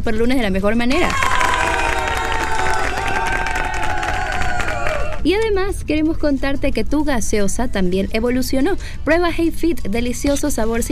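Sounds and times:
speech: 0:00.0 - 0:01.4, 0:05.2 - 0:10.9
crowd applause: 0:01.1 - 0:05.2.

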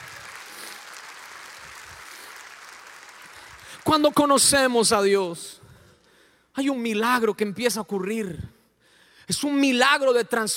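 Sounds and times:
audience applause: 0:00.0 - 0:04.0
speech: 0:03.8 - 0:05.6, 0:06.6 - 0:08.6, 0:09.3 - 0:10.5.

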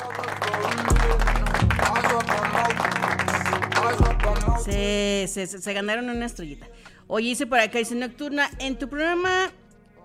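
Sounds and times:
crowd applause: 0:00.0 - 0:04.6
low music: 0:00.0 - 0:10.0
speech: 0:04.7 - 0:09.6.

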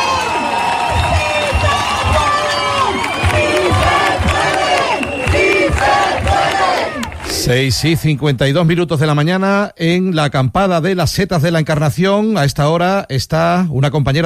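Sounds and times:
large demonstration crowd cheering and chanting: 0:00.0 - 0:08.8
steady rhythmic pulse: 0:00.9 - 0:07.7
speech: 0:07.5 - 0:14.2.

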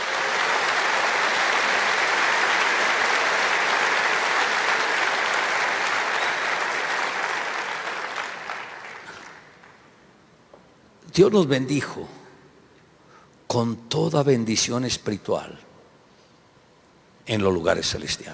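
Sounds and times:
audience applause: 0:00.0 - 0:10.0
speech: 0:11.2 - 0:12.2, 0:13.5 - 0:15.7, 0:17.3 - 0:18.3.

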